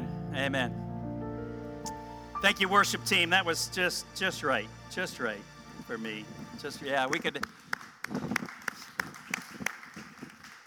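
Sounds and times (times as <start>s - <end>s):
speech: 0.4s - 0.8s, 1.8s - 8.2s
weak scattered applause: 7.0s - 10.6s.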